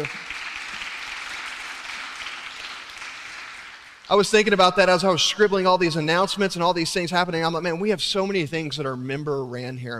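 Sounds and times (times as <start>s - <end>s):
speech: 0.0s - 0.2s, 4.1s - 9.9s
audience applause: 0.0s - 4.1s.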